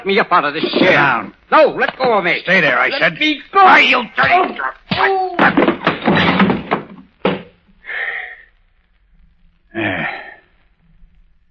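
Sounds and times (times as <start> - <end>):
speech: 0.0 - 5.6, 9.8 - 10.2
man falling hard to the floor: 0.6 - 1.2, 4.2 - 7.6.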